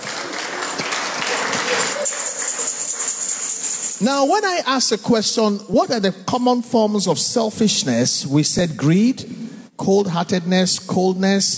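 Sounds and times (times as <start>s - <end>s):
audience clapping: 0.0s - 4.0s
speech: 4.0s - 11.5s.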